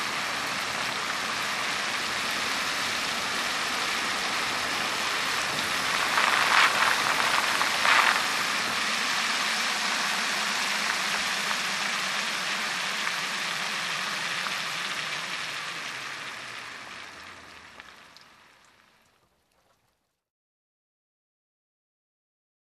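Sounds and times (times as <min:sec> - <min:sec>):
car driving in the rain: 0:00.0 - 0:18.6
rain: 0:00.0 - 0:20.3.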